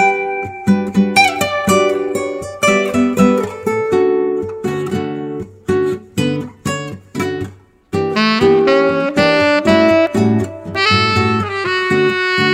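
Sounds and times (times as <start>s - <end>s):
guitar: 0.0s - 12.5s
smooth saxophone: 8.1s - 12.5s.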